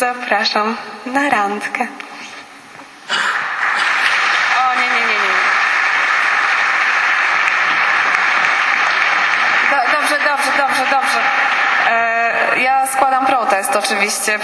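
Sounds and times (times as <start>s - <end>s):
speech: 0.0s - 2.2s, 13.6s - 14.4s
audience applause: 3.1s - 13.7s.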